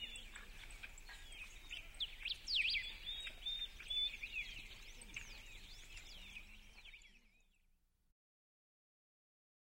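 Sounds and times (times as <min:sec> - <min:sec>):
birds chirping at dawn in a village: 0:00.0 - 0:07.8.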